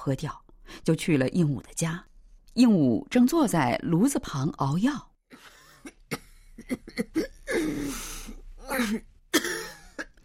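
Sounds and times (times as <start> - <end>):
speech: 0.0 - 6.0, 6.6 - 9.6
woman coughing painfully: 5.7 - 7.9, 8.6 - 10.2.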